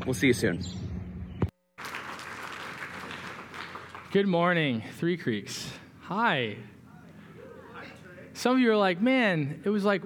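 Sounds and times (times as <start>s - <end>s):
speech: 0.0s - 0.9s, 4.1s - 6.7s, 8.4s - 10.0s
church congregation applauding to welcome a pastor: 1.7s - 4.3s.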